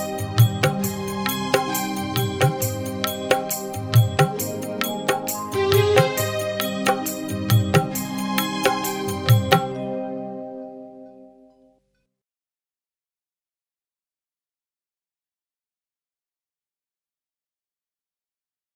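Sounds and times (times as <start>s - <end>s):
karaoke music: 0.0s - 11.0s.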